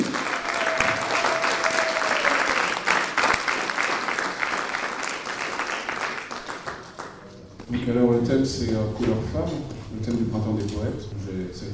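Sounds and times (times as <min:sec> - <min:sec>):
audience applause for a poet: 0:00.0 - 0:07.3
speech: 0:07.9 - 0:11.7.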